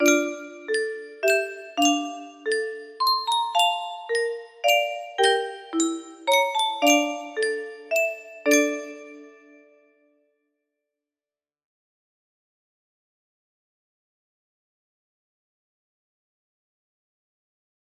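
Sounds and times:
music box melody: 0.0s - 9.7s.

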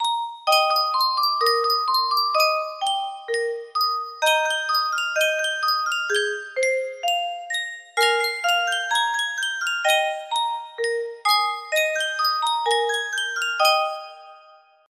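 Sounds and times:
Yunsheng custom tune music box melody: 0.0s - 14.9s.

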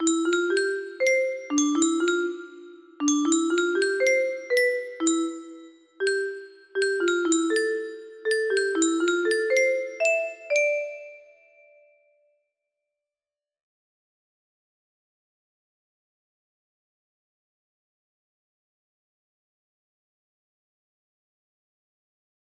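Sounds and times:
melody: 0.0s - 11.6s.

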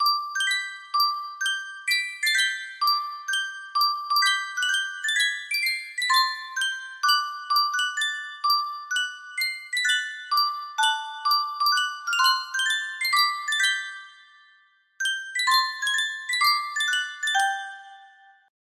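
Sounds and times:
Yunsheng music box melody: 0.0s - 18.5s.

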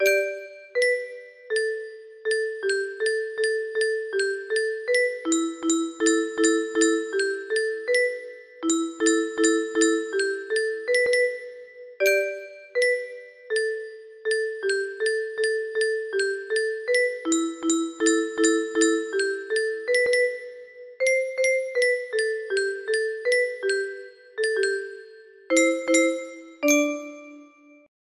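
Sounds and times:
melody: 0.0s - 27.9s.

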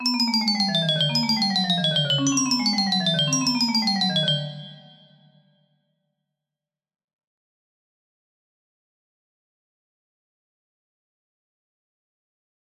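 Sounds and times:
music box melody: 0.0s - 5.4s.

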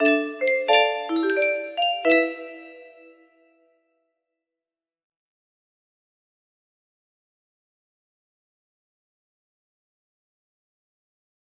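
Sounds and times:
melody: 0.0s - 3.3s.

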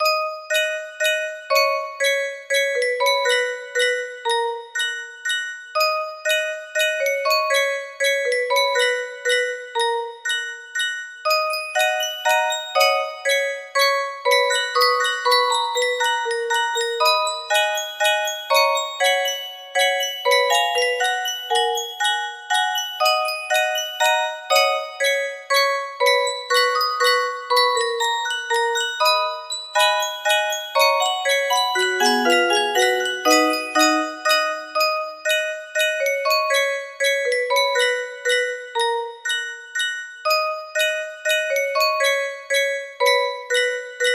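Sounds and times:
music box waltz melody: 0.0s - 44.1s.

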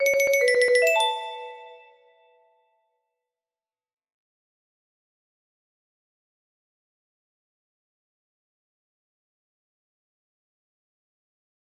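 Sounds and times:
music box melody train jingle: 0.0s - 2.2s.

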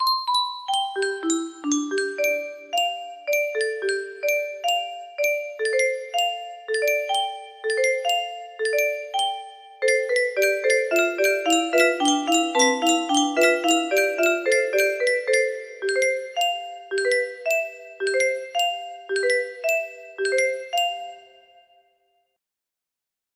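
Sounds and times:
main menu music box melody: 0.0s - 21.8s.

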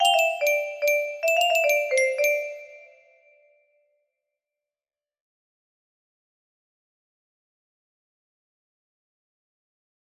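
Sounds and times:
mythical music box melody: 0.0s - 3.2s.

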